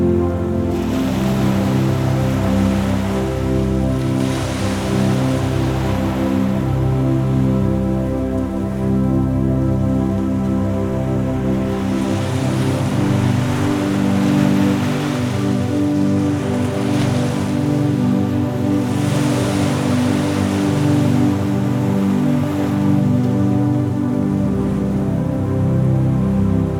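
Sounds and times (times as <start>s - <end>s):
ocean waves: 0.0s - 26.7s
sleep music: 0.0s - 26.7s.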